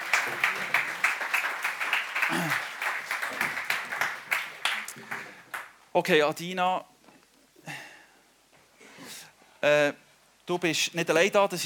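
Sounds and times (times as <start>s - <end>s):
warm crowd applause: 0.0s - 5.8s
speech: 6.0s - 6.9s, 9.6s - 11.6s.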